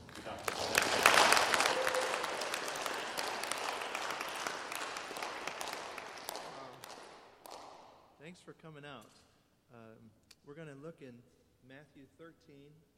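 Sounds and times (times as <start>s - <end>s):
small church congregation applauding: 0.0s - 8.0s
speech: 8.7s - 9.2s, 9.8s - 12.9s.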